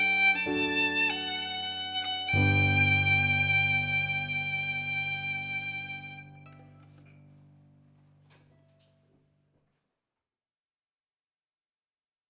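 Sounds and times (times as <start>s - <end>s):
piano: 0.0s - 9.1s.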